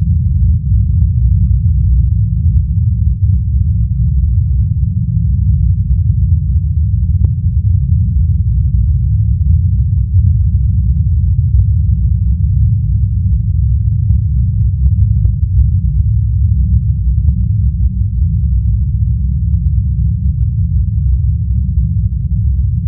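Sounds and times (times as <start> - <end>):
spaceship interior rumbling drone: 0.0 - 22.8.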